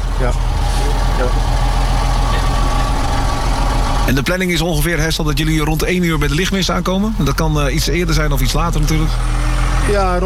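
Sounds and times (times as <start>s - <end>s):
vehicle engine droning while shifting gears and steering: 0.0s - 10.2s
speech: 0.2s - 0.5s, 1.2s - 1.6s, 4.1s - 10.2s.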